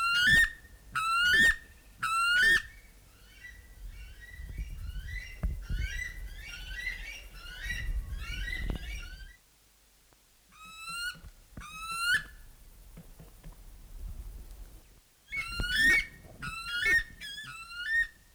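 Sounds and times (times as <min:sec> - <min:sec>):
buff weka calling with sliding whistled notes: 0:00.0 - 0:09.4, 0:15.3 - 0:18.2.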